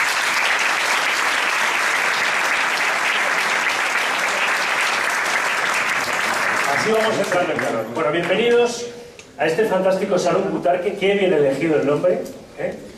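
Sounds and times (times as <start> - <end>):
audience applause: 0.0 - 7.8
speech: 6.8 - 12.9.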